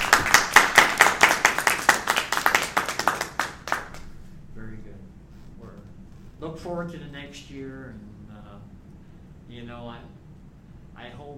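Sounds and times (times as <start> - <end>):
round of applause: 0.0 - 4.0
speech: 6.6 - 8.2, 9.5 - 10.2, 11.0 - 11.3.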